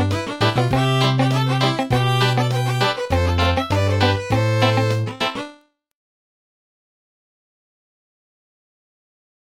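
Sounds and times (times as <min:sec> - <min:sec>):
simple drum beat: 0:00.0 - 0:04.9.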